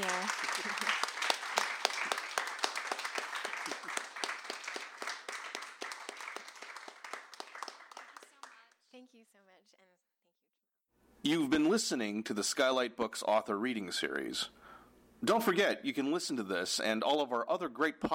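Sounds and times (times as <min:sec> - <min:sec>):
audience round of applause: 0:00.0 - 0:08.8
speech: 0:11.3 - 0:14.6, 0:15.2 - 0:18.1.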